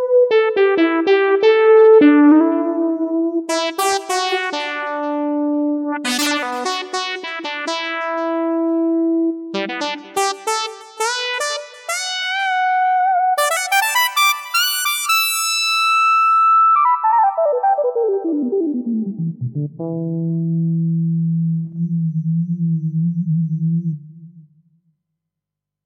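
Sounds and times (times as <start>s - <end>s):
FM synth lead: 0.2s - 24.7s.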